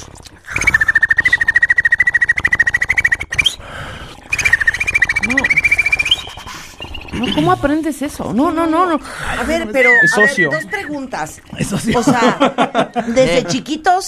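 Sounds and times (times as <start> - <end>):
person making a mouth click roll while whistling: 0.1 - 7.6, 9.8 - 10.9
speech: 7.2 - 14.0
laughter: 9.5 - 11.0, 11.6 - 13.7.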